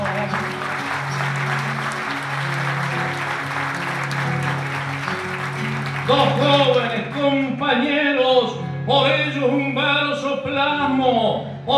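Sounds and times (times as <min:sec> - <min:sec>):
big round of applause: 0:00.0 - 0:07.6
speech: 0:06.1 - 0:11.7.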